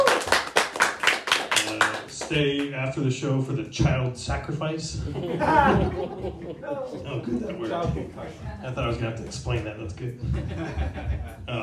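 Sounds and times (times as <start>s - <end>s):
audience applause: 0.0s - 2.7s
speech: 2.3s - 11.6s
laughter: 4.9s - 9.1s, 10.1s - 11.6s.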